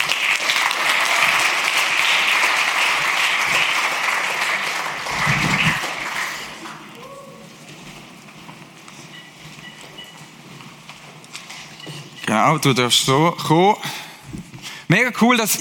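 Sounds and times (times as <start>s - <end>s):
audience applause: 0.0s - 7.6s
speech: 12.5s - 14.0s, 14.9s - 15.5s.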